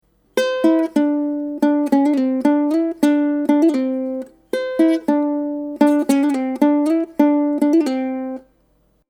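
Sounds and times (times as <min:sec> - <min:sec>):
pop song with ukulele: 0:00.4 - 0:08.4.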